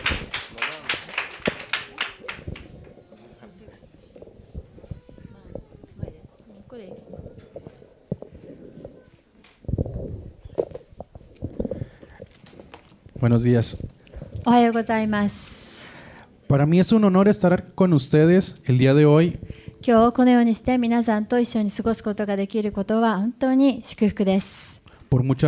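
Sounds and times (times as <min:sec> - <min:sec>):
crowd applause: 0:00.0 - 0:03.7
speech: 0:13.2 - 0:15.6, 0:16.5 - 0:25.4.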